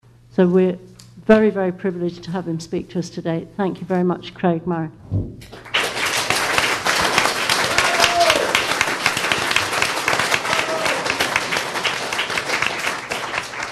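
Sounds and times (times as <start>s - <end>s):
speech: 0.4s - 5.6s
audience applause: 5.6s - 13.7s.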